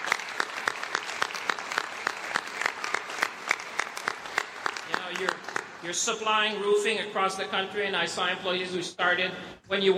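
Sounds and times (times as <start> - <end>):
audience applause: 0.0 - 5.8
speech: 5.1 - 9.9.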